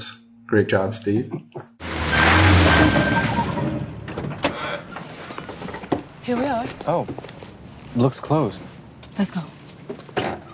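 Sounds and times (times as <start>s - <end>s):
speech: 0.0s - 1.7s, 6.3s - 7.3s, 8.0s - 10.0s
car door squeaking open: 2.1s - 4.9s.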